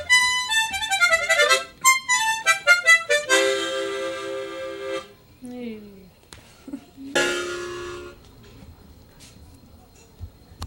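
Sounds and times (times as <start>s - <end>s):
gaita bagpipe: 0.0s - 5.1s, 7.1s - 8.2s.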